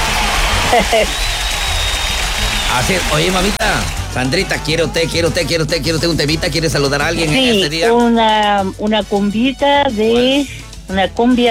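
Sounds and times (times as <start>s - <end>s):
applause: 0.0s - 4.6s
speech: 0.7s - 1.5s, 2.7s - 11.4s.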